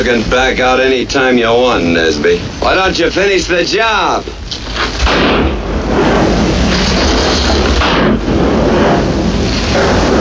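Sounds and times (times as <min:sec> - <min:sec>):
speech: 0:00.0 - 0:05.5
gunshots in a western film: 0:04.5 - 0:10.1.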